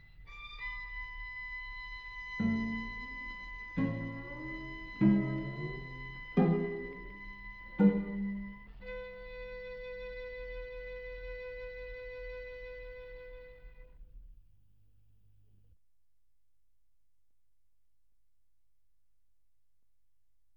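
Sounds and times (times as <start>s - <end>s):
string quartet in B flat major: 0.0s - 13.9s.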